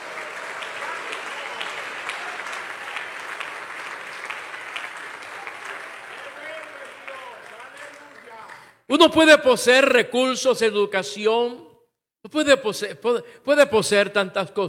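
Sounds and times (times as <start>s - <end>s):
audience applause: 0.0s - 8.8s
speech: 9.0s - 11.7s, 12.3s - 14.6s.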